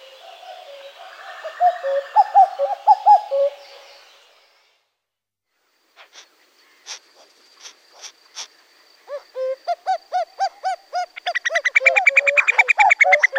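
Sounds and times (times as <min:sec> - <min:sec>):
common cuckoo: 0:00.0 - 0:03.8, 0:09.1 - 0:13.3.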